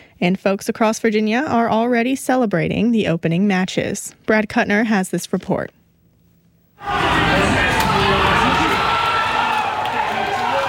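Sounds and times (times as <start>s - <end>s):
speech: 0.2s - 5.8s
fans in Virginia cheering a Mexico World Cup goal: 6.8s - 10.6s.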